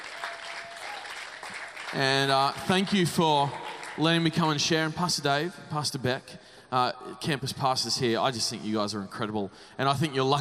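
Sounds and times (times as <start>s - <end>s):
audience clapping: 0.0s - 4.6s
speech: 1.9s - 10.3s.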